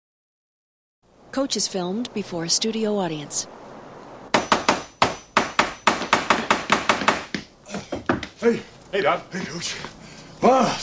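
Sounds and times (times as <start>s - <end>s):
speech: 1.3s - 3.6s, 8.4s - 10.8s
hammering: 4.3s - 8.4s.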